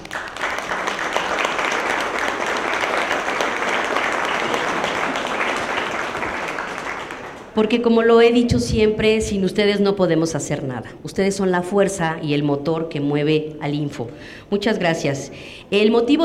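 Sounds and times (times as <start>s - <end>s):
audience applause: 0.0s - 7.6s
speech: 7.6s - 16.2s.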